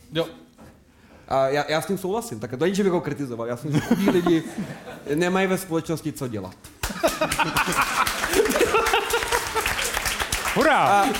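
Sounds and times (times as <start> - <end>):
speech: 0.1 - 0.4, 1.3 - 8.6, 10.6 - 11.1
laughter: 3.7 - 5.1, 6.9 - 10.1
audience applause: 6.8 - 11.1.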